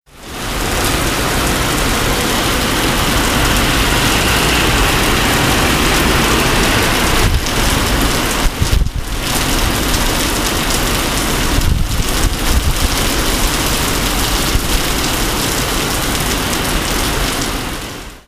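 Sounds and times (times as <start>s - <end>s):
rain in Singapore: 0.1s - 18.2s.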